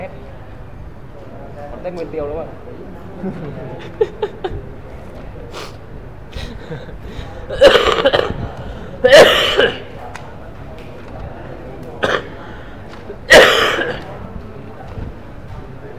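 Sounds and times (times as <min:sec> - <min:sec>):
speech: 0:01.8 - 0:04.8, 0:09.0 - 0:09.7
laughter: 0:02.9 - 0:09.9
person coughing: 0:06.4 - 0:08.4, 0:09.0 - 0:09.9, 0:12.0 - 0:12.4, 0:13.3 - 0:14.0.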